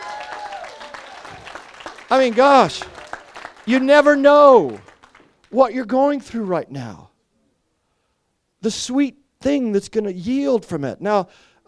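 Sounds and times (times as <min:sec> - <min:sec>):
audience cheering: 0:00.0 - 0:05.3
audience applause: 0:00.0 - 0:05.5
speech: 0:02.1 - 0:02.9, 0:03.7 - 0:04.9, 0:05.5 - 0:07.1, 0:08.6 - 0:11.6.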